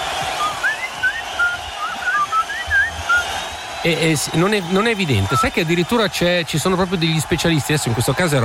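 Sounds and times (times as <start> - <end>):
melodic human whistling of a quick tune: 0.4 - 3.3
speech: 3.8 - 8.4.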